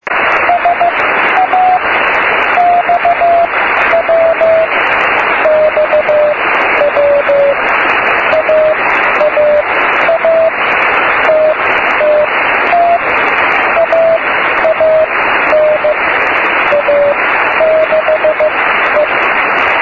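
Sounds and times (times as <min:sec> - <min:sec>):
CW morse code beacon: 0:00.1 - 0:19.8.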